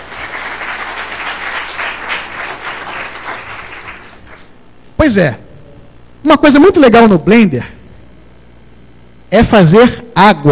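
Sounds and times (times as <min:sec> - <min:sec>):
applause: 0:00.0 - 0:04.5
speech: 0:05.0 - 0:05.4, 0:06.2 - 0:07.8, 0:09.3 - 0:10.5.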